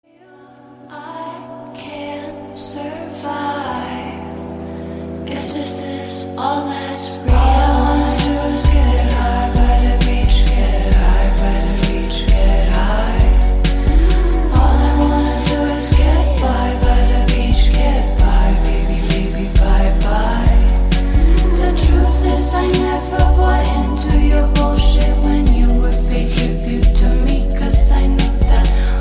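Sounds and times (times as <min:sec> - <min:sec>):
sad ringtone melody: 0:07.3 - 0:28.8.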